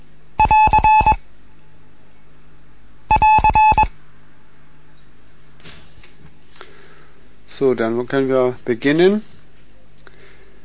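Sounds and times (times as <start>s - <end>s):
Morse code end-of-transmission signal: 0.4s - 1.2s, 3.1s - 3.9s
speech: 7.6s - 9.3s.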